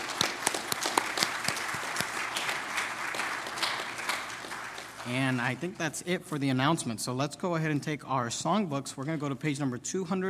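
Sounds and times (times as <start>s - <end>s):
audience applause: 0.0s - 5.7s
speech: 5.0s - 10.2s.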